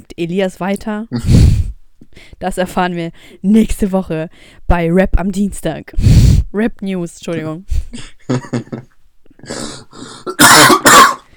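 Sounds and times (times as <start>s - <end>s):
speech: 0.2s - 1.5s, 2.2s - 10.2s
laughter: 8.3s - 8.9s
harsh phlegmy smoker's cough: 9.4s - 11.3s.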